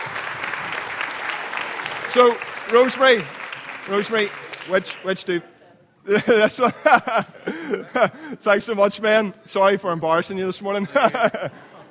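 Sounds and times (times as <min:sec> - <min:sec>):
audience applause: 0:00.0 - 0:05.3
speech: 0:02.1 - 0:11.7
laughter: 0:06.1 - 0:08.6, 0:10.7 - 0:11.8.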